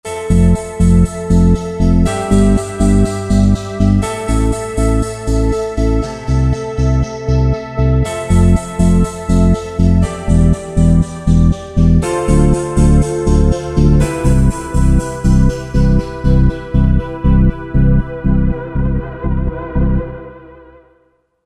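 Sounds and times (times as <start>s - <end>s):
Roland JV-2080 synthesizer: 0.0s - 21.1s.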